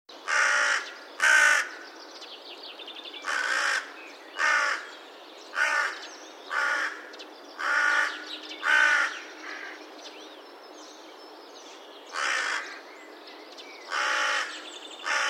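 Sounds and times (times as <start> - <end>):
Carrion crow giving harsh hoarse caws: 0.3 - 1.8, 3.2 - 4.9, 5.6 - 9.8, 12.1 - 12.8, 13.9 - 15.2.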